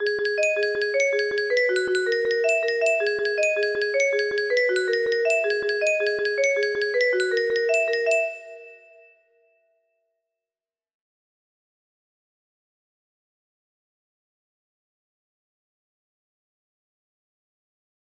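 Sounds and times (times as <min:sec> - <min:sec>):
music box: 0:00.0 - 0:09.1.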